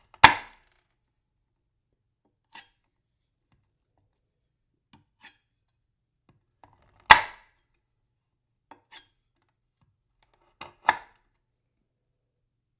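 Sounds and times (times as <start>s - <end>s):
knife chopping on wood: 0.2s - 0.6s, 7.0s - 7.4s, 10.6s - 11.2s.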